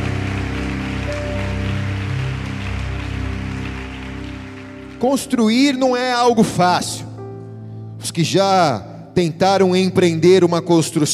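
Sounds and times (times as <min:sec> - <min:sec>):
audience applauding loudly: 0:00.0 - 0:06.4
speech: 0:05.0 - 0:07.1, 0:08.0 - 0:11.1.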